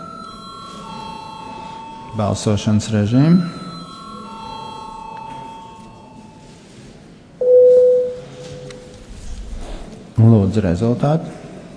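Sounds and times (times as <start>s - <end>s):
parliament session electric bell ringing: 0.0s - 6.6s, 7.4s - 8.8s
low hum: 0.0s - 11.7s
speech: 2.1s - 3.6s, 10.3s - 11.4s.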